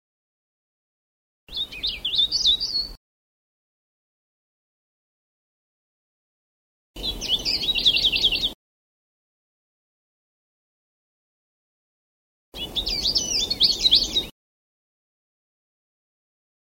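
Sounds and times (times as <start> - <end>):
Sulawesi cikrak bird chirping: 1.5 - 3.0, 7.0 - 8.6, 12.6 - 14.3.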